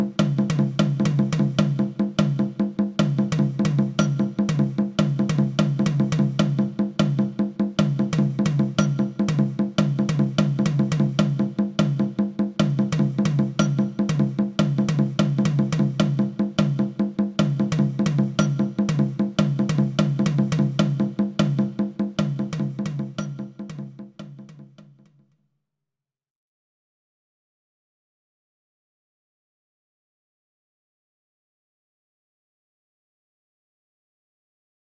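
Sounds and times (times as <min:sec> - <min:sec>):
long bar with polyrhythm and normal rhythms: 0:00.0 - 0:24.8.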